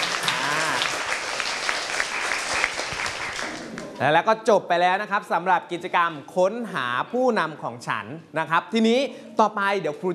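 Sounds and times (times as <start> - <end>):
classroom group clapping: 0.0 - 4.0
speech: 4.0 - 10.1.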